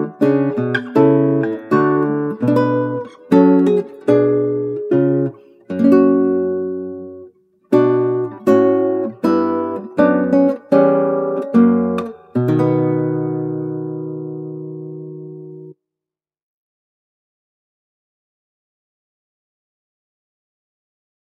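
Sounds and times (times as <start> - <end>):
classical guitar: 0.0 - 15.8.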